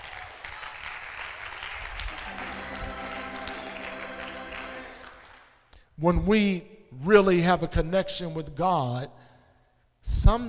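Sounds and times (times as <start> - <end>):
audience clapping: 0.0 - 5.7
speech: 6.0 - 9.3, 10.0 - 10.4.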